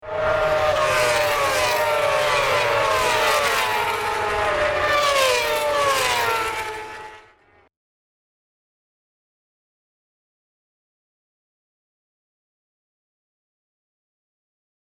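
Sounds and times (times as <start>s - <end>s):
racing sound effect: 0.0s - 7.7s.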